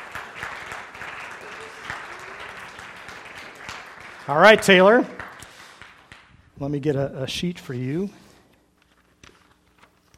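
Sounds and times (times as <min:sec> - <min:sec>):
audience applause: 0:00.0 - 0:06.3
speech: 0:04.3 - 0:05.2, 0:06.6 - 0:08.2.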